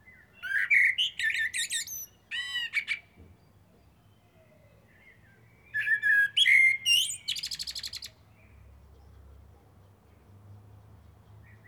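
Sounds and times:
common blackbird Turdus merula singing: 0.0s - 8.5s.

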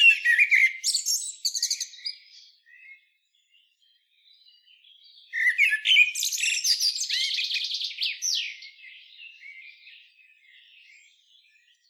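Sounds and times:
common blackbird Turdus merula squeaky notes and twittering: 0.0s - 3.0s, 5.3s - 8.7s.

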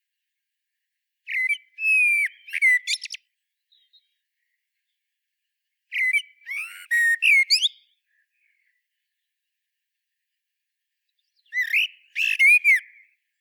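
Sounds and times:
common blackbird song: 1.3s - 4.2s, 5.9s - 8.0s, 11.2s - 13.2s.

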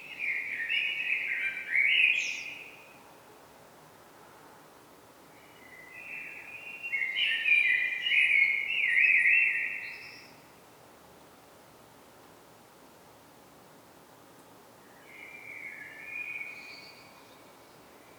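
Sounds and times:
common blackbird Turdus merula song: 0.0s - 3.0s, 5.4s - 10.4s, 14.9s - 18.1s.

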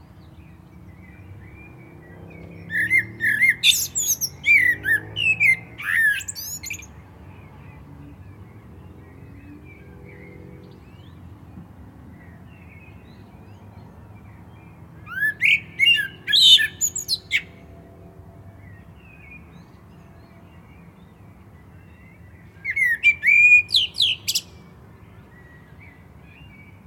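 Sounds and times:
common blackbird singing: 0.2s - 11.2s, 12.2s - 17.6s, 21.8s - 26.8s.

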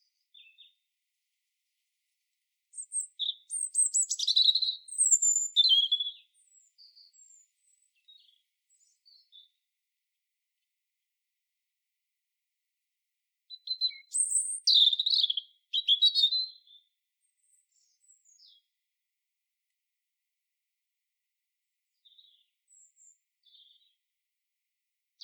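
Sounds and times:
European robin Erithacus rubecula singing: 0.0s - 0.8s, 2.7s - 9.6s, 13.5s - 18.7s.

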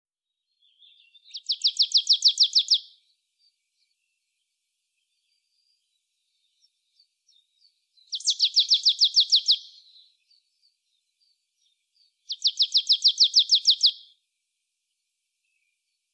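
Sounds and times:
marsh tit Poecile palustris singing: 0.6s - 2.9s, 7.3s - 10.4s, 12.0s - 14.1s.

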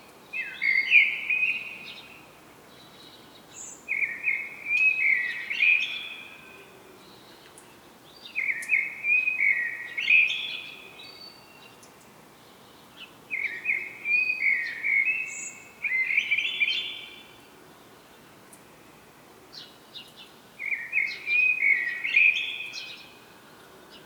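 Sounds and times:
common blackbird singing: 0.4s - 2.1s, 3.1s - 6.4s, 8.2s - 11.8s, 13.3s - 17.3s, 20.6s - 23.2s.

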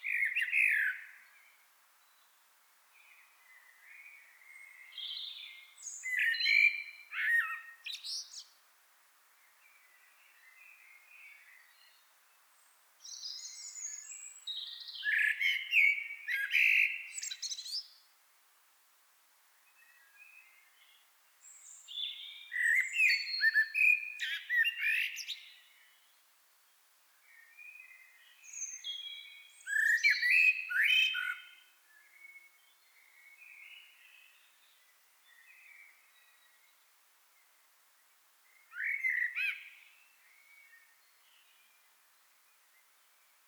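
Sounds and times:
common blackbird song: 0.0s - 1.3s, 3.5s - 8.5s, 13.0s - 18.0s, 19.9s - 25.9s, 27.3s - 36.7s, 38.5s - 41.8s.

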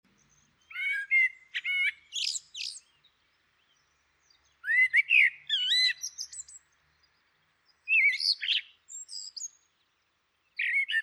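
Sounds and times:
common blackbird whistled song: 0.2s - 6.7s, 7.8s - 9.7s, 10.6s - 11.0s.

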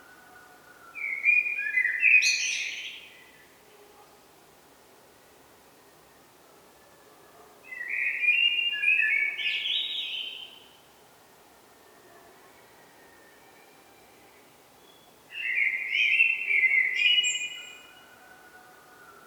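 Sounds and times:
Eurasian blackbird Turdus merula song: 0.0s - 3.5s, 7.7s - 10.8s, 14.1s - 19.2s.

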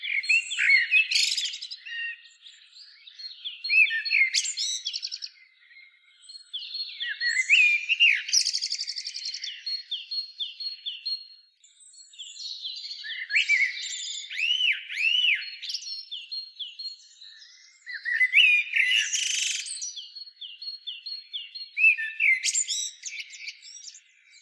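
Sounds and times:
Eurasian blackbird Turdus merula singing: 0.0s - 24.4s.

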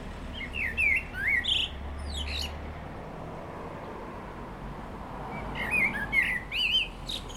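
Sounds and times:
common blackbird Turdus merula song: 0.3s - 2.7s, 5.3s - 7.3s.

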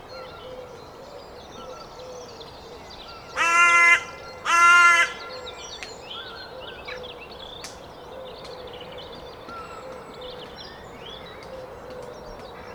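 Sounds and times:
carrion crow Corvus corone giving loud harsh even caws: 3.4s - 5.4s.

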